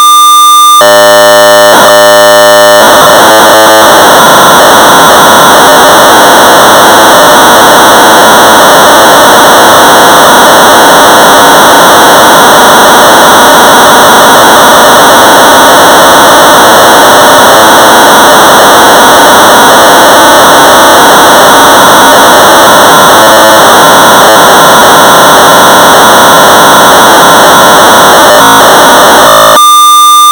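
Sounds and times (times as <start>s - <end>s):
1200 baud modem data tones: 0.2s - 30.3s.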